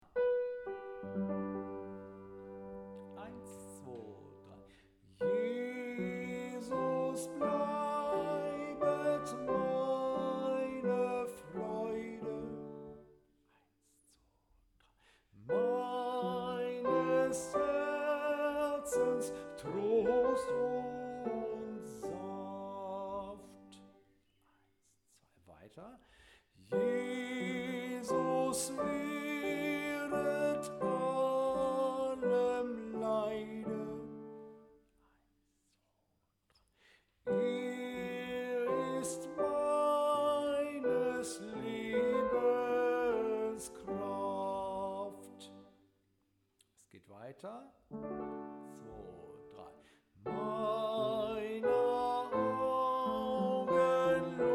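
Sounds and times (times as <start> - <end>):
soprano voice: 0.6 - 13.0, 15.5 - 23.9, 26.7 - 34.6, 37.3 - 45.7, 48.2 - 54.5.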